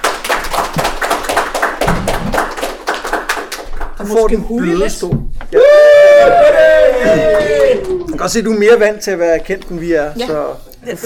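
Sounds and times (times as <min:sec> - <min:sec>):
audience applause: 0:00.0 - 0:04.1, 0:06.2 - 0:08.1
speech: 0:04.0 - 0:11.0.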